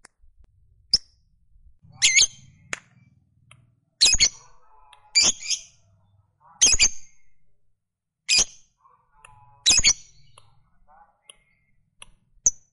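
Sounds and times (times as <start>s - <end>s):
fighter-type lovebird chirping and giving long rapid high chatter: 1.9s - 2.7s, 4.0s - 5.9s, 9.2s - 11.7s.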